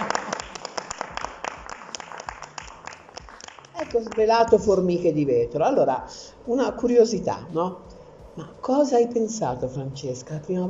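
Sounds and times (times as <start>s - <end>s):
applause: 0.0s - 4.3s
speech: 3.9s - 10.6s.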